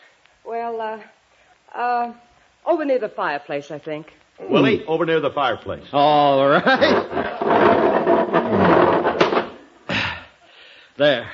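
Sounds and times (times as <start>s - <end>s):
speech: 0.7s - 7.6s, 11.0s - 11.3s
love seat being pushed across the floor: 6.6s - 9.8s.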